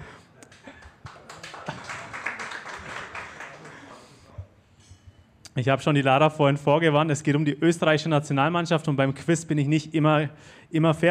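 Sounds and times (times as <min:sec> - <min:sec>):
audience clapping: 0:00.4 - 0:04.3
speech: 0:05.6 - 0:11.1.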